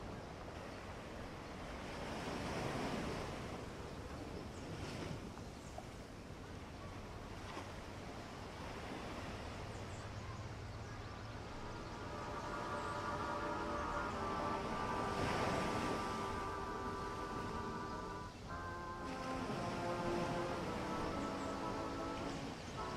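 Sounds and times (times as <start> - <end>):
ocean waves washing in a rushing roar: 0.0 - 22.9
seagulls crying: 11.0 - 22.9.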